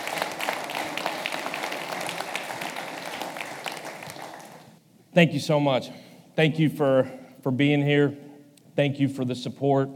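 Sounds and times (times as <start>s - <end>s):
audience applause welcoming a new head football coach: 0.0s - 4.8s
speech: 5.2s - 8.2s, 8.8s - 9.9s.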